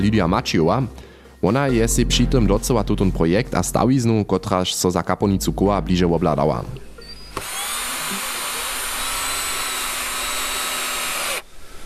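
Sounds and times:
speech: 0:00.0 - 0:07.5
cordless drill screwing a plaque: 0:07.2 - 0:11.8.

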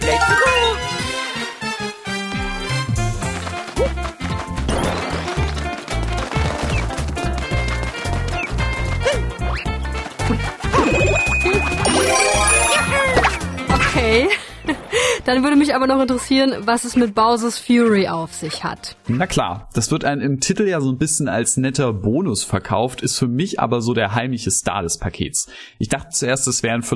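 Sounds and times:
bright upbeat video game soundtrack music: 0:00.0 - 0:18.2
speech: 0:15.3 - 0:26.9.

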